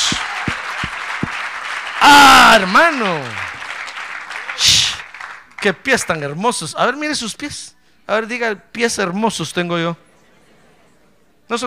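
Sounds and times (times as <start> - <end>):
audience applauding: 0.0 - 6.4
speech: 2.1 - 3.4, 5.6 - 10.1, 11.5 - 11.6.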